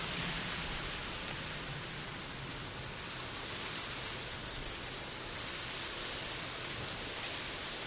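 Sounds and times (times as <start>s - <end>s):
summer meadow ambience: 0.2s - 7.8s.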